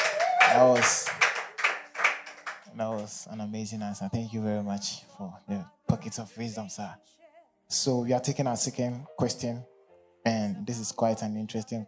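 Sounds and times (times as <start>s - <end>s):
vocal cheer or whoop: 0.0s - 1.2s
group hand clapping: 0.0s - 3.2s
speech: 0.6s - 1.2s, 2.8s - 11.8s.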